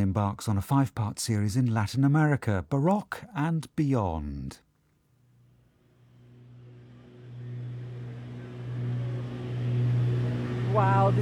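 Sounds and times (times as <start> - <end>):
speech: 0.0 - 4.7, 10.8 - 11.2
small six-seater propeller plane engine in flight: 6.0 - 11.2.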